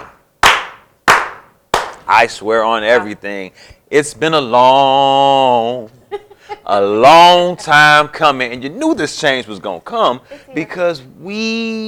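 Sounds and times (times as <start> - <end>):
slow clap: 0.0 - 2.1
speech: 2.1 - 11.8.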